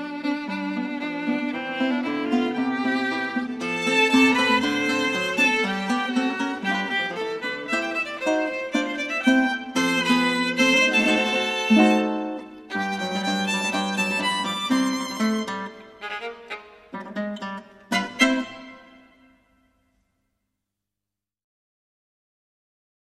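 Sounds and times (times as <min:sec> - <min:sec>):
violin: 0:00.0 - 0:19.6
guitar: 0:00.0 - 0:19.8.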